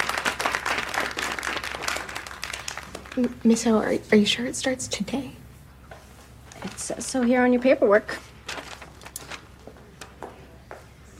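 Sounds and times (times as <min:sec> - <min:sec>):
round of applause: 0:00.0 - 0:03.2
speech: 0:03.2 - 0:05.4, 0:06.6 - 0:08.3.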